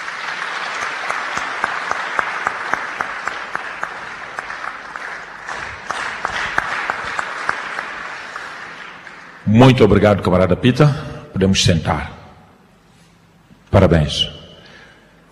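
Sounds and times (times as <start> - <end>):
round of applause: 0.0 - 10.0
speech: 9.6 - 12.2, 13.8 - 14.4.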